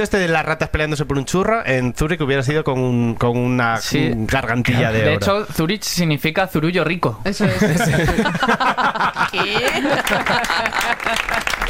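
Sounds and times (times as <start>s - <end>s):
speech: 0.0s - 11.6s
laughter: 7.4s - 11.6s
applause of many hands clapping: 9.2s - 11.6s.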